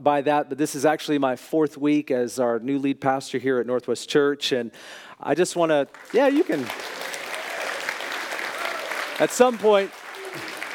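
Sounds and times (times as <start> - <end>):
speech: 0.0 - 7.2, 9.2 - 10.5
church congregation clapping for its new lead pastor: 5.8 - 10.7.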